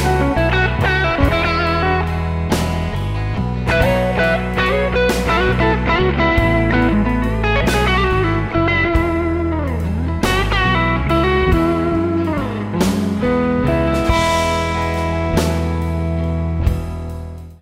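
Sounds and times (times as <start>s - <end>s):
solo performance: 0.0s - 17.2s.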